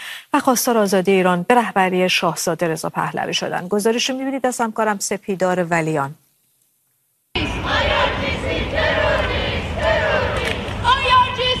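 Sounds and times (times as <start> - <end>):
speech: 0.4 - 6.2
Iranian protesters chanting at a rally in downtown Calgary: 7.4 - 11.5.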